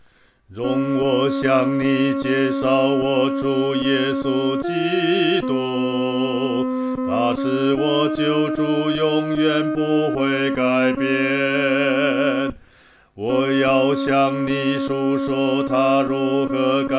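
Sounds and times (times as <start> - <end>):
solo singing, second voice: 0.5 - 12.6, 13.2 - 16.9.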